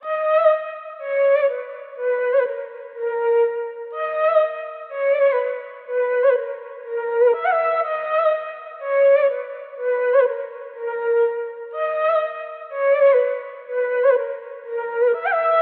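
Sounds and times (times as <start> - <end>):
flute: 0.0 - 15.5.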